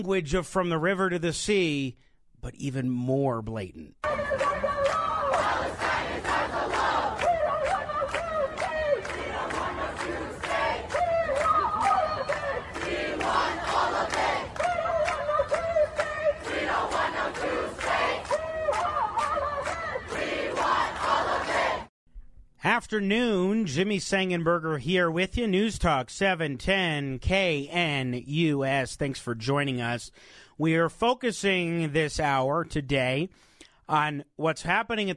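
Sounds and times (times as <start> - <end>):
speech: 0.0 - 5.5, 22.7 - 35.1
large protest crowd chanting in unison: 4.0 - 21.9.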